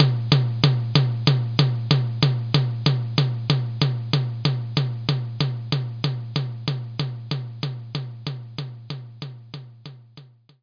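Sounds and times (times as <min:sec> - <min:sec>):
mid tom drum: 0:00.0 - 0:10.6.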